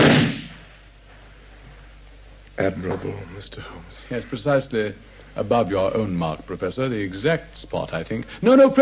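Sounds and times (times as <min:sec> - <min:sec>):
pistol shot fired into a wall at an existing bullet mark: 0:00.0 - 0:00.6
speech: 0:02.6 - 0:08.8.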